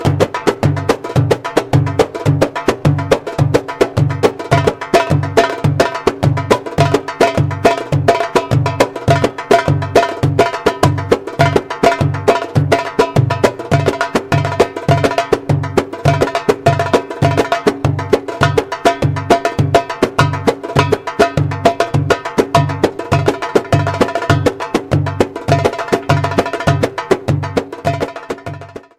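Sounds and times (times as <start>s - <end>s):
darbuka drumming: 0.0s - 28.9s.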